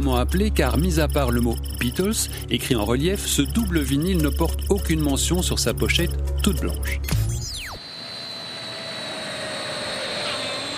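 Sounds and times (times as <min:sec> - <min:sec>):
speech: 0:00.0 - 0:07.2
long-haul jet airliner engine: 0:07.8 - 0:10.7.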